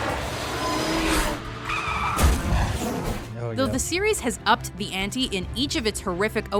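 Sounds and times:
car engines roaring: 0:00.0 - 0:03.0
freeway pileup with skidding tires: 0:00.0 - 0:03.0
speech: 0:03.6 - 0:06.5.

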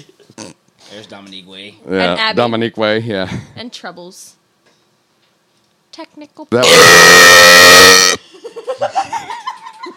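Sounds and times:
speech: 0:00.9 - 0:04.4, 0:06.0 - 0:09.4
loud brassy cartoon alarm buzzing: 0:06.6 - 0:08.2.

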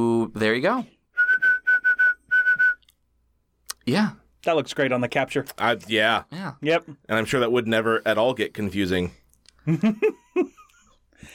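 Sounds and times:
speech: 0:00.0 - 0:01.0, 0:03.9 - 0:10.6
slide whistle: 0:01.2 - 0:02.9.

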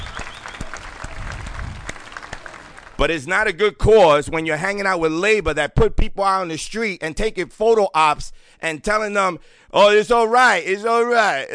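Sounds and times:
sarcastic applause clap: 0:00.0 - 0:03.1
speech: 0:03.0 - 0:11.5.

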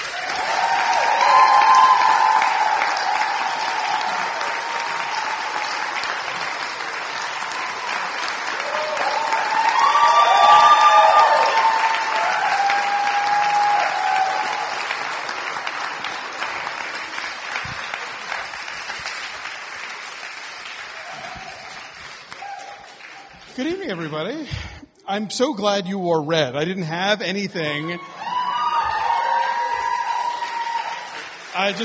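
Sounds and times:
whoops and cheers: 0:00.0 - 0:06.3, 0:07.2 - 0:15.1, 0:20.9 - 0:23.3, 0:28.0 - 0:31.3
crowd applause: 0:00.0 - 0:24.4, 0:28.0 - 0:31.8
speech: 0:25.2 - 0:28.1, 0:31.6 - 0:31.8.

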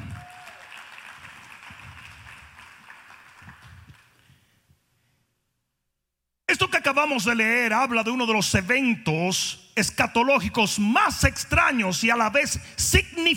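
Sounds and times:
audience applauding: 0:00.0 - 0:04.3
speech: 0:06.6 - 0:13.3.

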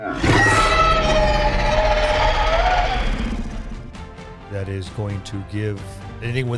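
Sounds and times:
person voicing a dragon's roar: 0:00.0 - 0:03.5
speech: 0:04.6 - 0:06.5.

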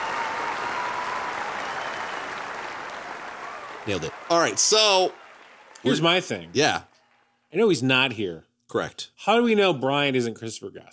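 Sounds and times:
crowd applause: 0:00.0 - 0:07.8
speech: 0:03.9 - 0:05.2, 0:05.8 - 0:06.9, 0:07.5 - 0:10.9.

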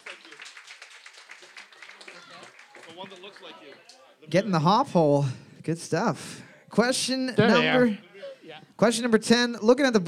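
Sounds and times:
round of applause for team number 12: 0:00.0 - 0:04.1
speech: 0:03.0 - 0:08.1, 0:08.8 - 0:10.0.

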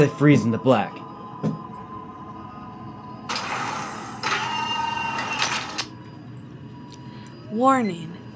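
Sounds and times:
speech: 0:00.0 - 0:01.6, 0:07.6 - 0:08.2
spaceship airlock door opening: 0:03.3 - 0:05.8.

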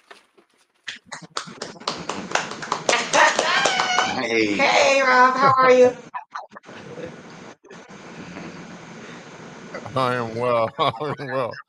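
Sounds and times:
laughter: 0:00.9 - 0:04.6, 0:09.8 - 0:11.6
round of applause: 0:01.2 - 0:04.5
speech: 0:04.3 - 0:06.1, 0:10.0 - 0:11.6.

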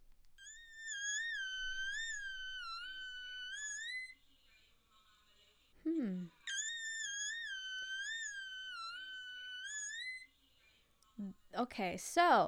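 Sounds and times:
person singing whistle-register notes: 0:00.4 - 0:04.2, 0:05.8 - 0:10.3
speech: 0:11.6 - 0:12.4.

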